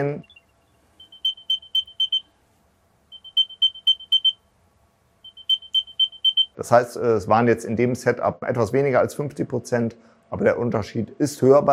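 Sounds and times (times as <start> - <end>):
speech: 0.0 - 0.3, 6.6 - 11.7
new-generation Apple AirTag locating alert chirps: 0.0 - 2.3, 3.1 - 4.4, 5.2 - 6.6.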